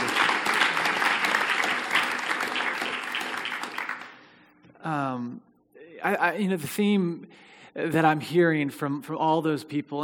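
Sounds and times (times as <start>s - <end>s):
audience applause: 0.0s - 4.2s
speech: 4.9s - 10.0s.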